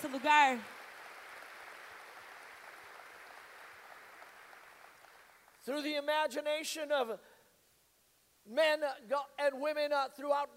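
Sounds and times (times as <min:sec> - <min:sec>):
sustained applause from a large audience: 0:00.0 - 0:05.6
speech: 0:00.1 - 0:00.8, 0:05.6 - 0:07.3, 0:08.4 - 0:10.5.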